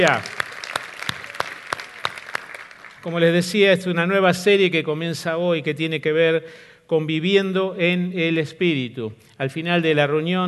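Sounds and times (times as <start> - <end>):
speech: 0.0 - 0.3, 3.0 - 10.4
audience applauding: 0.0 - 3.4.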